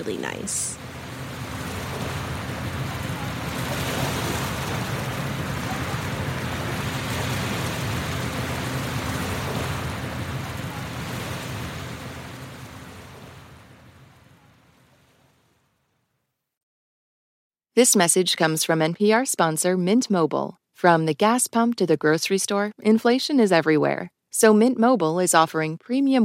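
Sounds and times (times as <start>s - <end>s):
speech: 0.0s - 1.1s, 17.8s - 26.2s
surf washing over the rocky beach at Volunteer Park in Vancouver Canada: 0.8s - 15.5s.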